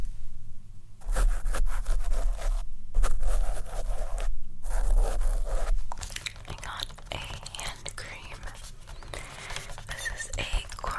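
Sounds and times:
low steady hum: 0:00.0 - 0:10.9
scratching on makeup items: 0:01.0 - 0:10.9
soft breathy sounds: 0:07.7 - 0:10.9.

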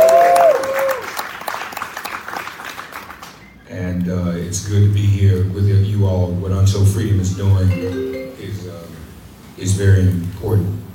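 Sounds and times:
tonal cheer: 0:00.0 - 0:01.3
crowd clapping: 0:00.0 - 0:03.5
speech: 0:04.5 - 0:09.0, 0:09.6 - 0:10.7.

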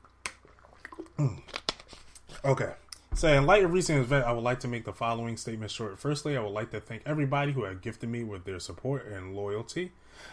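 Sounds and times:
drinking a sip of water: 0:00.0 - 0:03.1
speech: 0:01.2 - 0:01.5, 0:02.4 - 0:10.3.

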